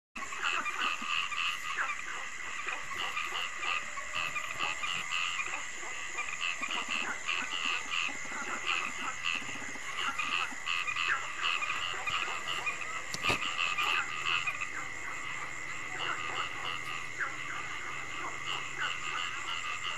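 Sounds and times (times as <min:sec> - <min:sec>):
frog chorus croaking: 0:00.2 - 0:19.9.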